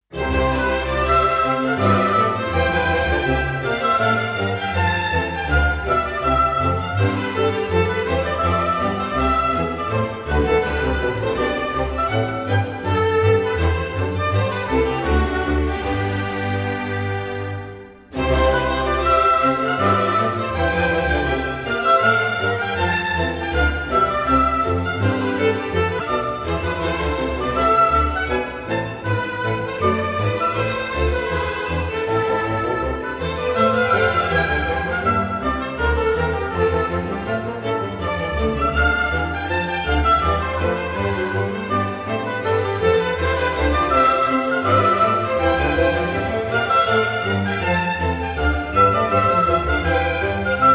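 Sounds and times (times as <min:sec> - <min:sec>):
orchestral suite in C major: 0:00.0 - 0:50.7.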